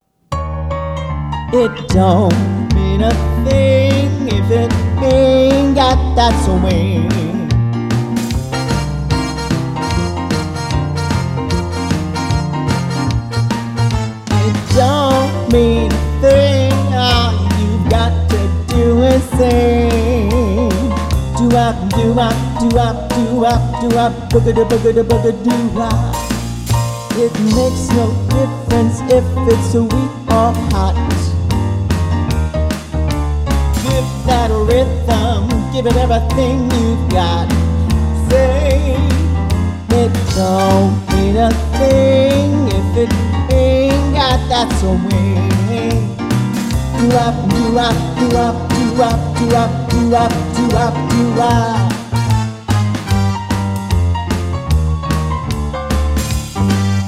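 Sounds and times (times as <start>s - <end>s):
swing music: 0.0s - 57.0s.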